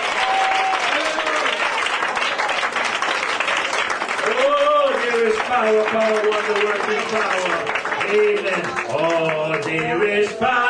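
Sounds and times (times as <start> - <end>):
audience clapping: 0.0 - 10.6
speech: 5.5 - 10.6.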